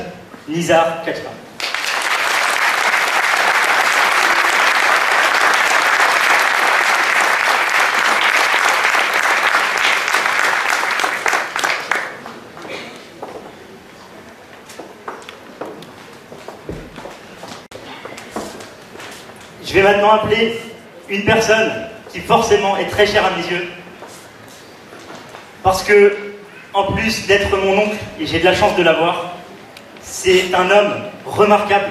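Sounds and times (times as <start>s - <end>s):
speech: 0.5s - 1.4s, 19.8s - 23.8s, 25.7s - 26.2s, 26.8s - 29.3s, 30.2s - 31.9s
thunderous applause from audience: 1.6s - 12.2s.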